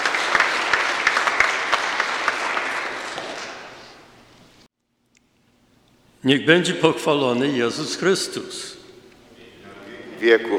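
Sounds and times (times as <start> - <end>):
audience applause: 0.0 - 4.2
speech: 6.2 - 8.8, 10.2 - 10.5.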